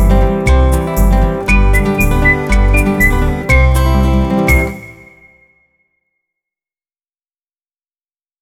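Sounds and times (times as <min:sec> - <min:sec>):
instrumental music: 0:00.0 - 0:05.6.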